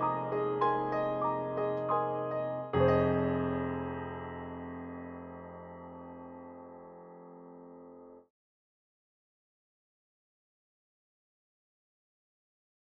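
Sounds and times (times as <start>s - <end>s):
big grand piano: 0.0s - 8.3s.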